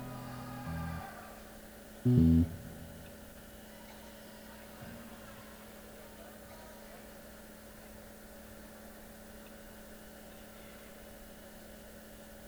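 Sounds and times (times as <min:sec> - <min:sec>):
instrument tuning: 0:00.0 - 0:01.3, 0:02.1 - 0:03.3.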